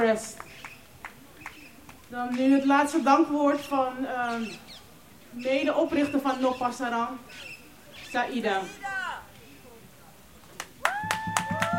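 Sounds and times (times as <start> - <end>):
speech: 0.0 - 0.4, 2.1 - 4.6, 5.3 - 9.0
audience applause: 10.6 - 11.7.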